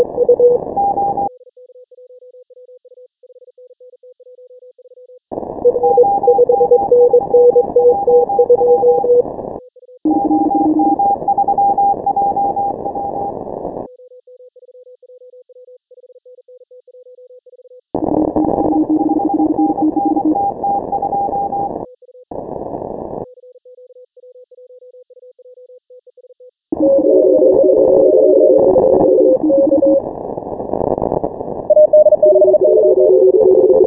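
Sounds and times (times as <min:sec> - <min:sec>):
morse code beeps: 0:00.0 - 0:01.3, 0:05.6 - 0:09.2, 0:10.1 - 0:13.2, 0:18.1 - 0:21.7, 0:26.8 - 0:30.0, 0:31.7 - 0:33.8.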